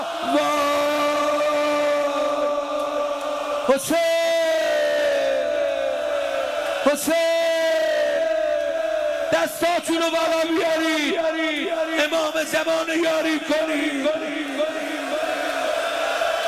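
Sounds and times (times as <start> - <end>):
crowd of mourners crying out on the night of Ashura: 0.0 - 9.7, 14.2 - 16.4
speech: 3.7 - 4.1, 6.9 - 7.3, 9.6 - 14.8.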